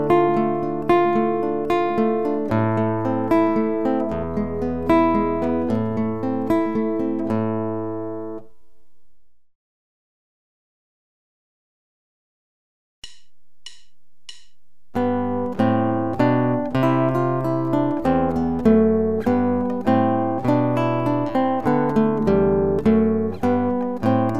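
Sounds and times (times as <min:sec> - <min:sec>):
classical guitar playing free-stroke, arpeggio and contrapuntal: 0:00.0 - 0:09.0, 0:14.9 - 0:24.3.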